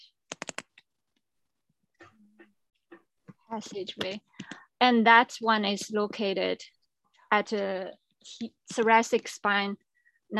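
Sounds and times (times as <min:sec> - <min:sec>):
computer keyboard typing: 0:00.3 - 0:00.8
speech: 0:03.5 - 0:10.3.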